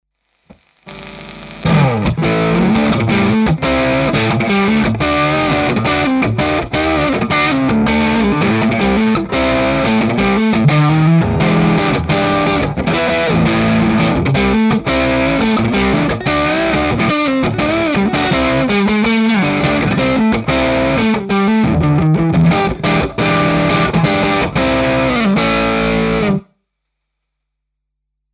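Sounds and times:
twang combo amp tough tweed tone: 0.5s - 26.4s.

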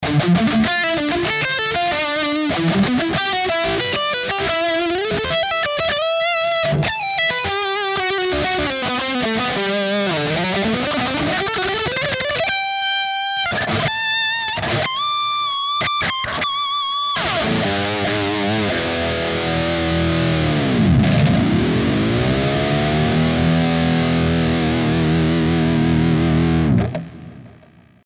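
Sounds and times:
bridge humbucker lead guitar: 0.0s - 28.0s.

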